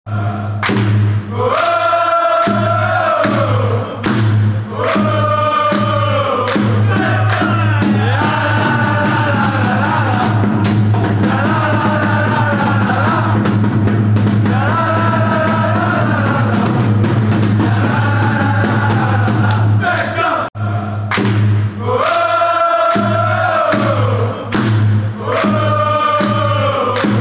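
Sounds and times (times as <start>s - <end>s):
football fans chanting: 0.1s - 13.8s, 14.4s - 27.2s.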